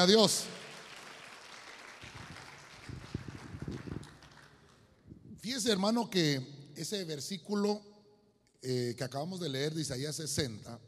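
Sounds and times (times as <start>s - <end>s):
speech: 0.0s - 0.6s, 5.5s - 7.9s, 8.6s - 10.8s
audience clapping: 0.0s - 5.0s.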